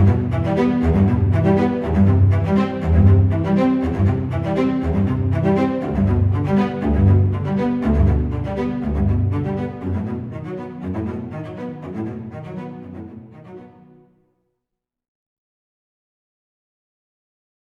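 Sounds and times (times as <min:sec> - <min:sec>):
cinematic cello arpeggio trailer music: 0:00.0 - 0:14.2.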